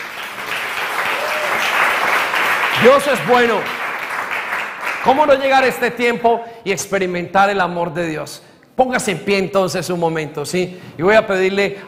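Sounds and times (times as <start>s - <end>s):
large audience applause: 0.0s - 5.4s
speech: 2.8s - 3.8s, 5.0s - 11.8s.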